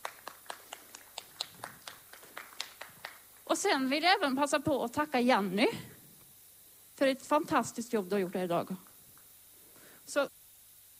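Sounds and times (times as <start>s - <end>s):
few hands clapping in a steady rhythm: 0.0s - 3.4s
speech: 3.5s - 5.9s, 7.0s - 8.9s, 10.1s - 10.4s.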